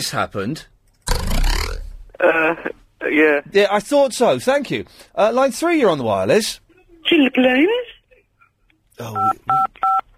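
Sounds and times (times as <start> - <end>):
speech: 0.0 - 0.8, 2.3 - 7.9, 9.0 - 9.7
telephone keypad button tones: 9.2 - 10.0.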